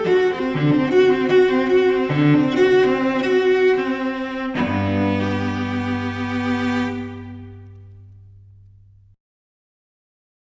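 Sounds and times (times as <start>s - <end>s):
cello playing a suite: 0.0s - 9.0s.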